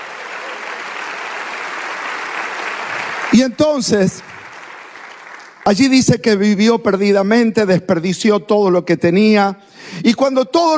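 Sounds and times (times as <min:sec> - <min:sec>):
audience applause: 0:00.0 - 0:05.7
speech: 0:03.4 - 0:04.4, 0:05.6 - 0:10.7.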